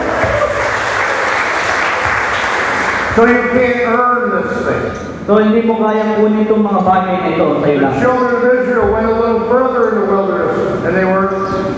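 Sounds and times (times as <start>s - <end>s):
church congregation applauding during a sermon: 0.0s - 3.2s
speech: 3.2s - 11.7s.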